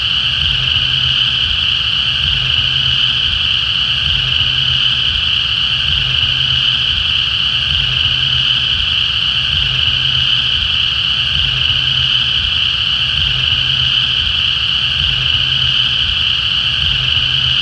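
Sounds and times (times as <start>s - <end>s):
cicada at Cane Creek: 0.0s - 17.6s.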